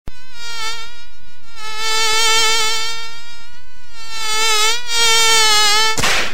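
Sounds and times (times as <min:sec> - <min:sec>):
mosquito bap: 0:00.1 - 0:06.0.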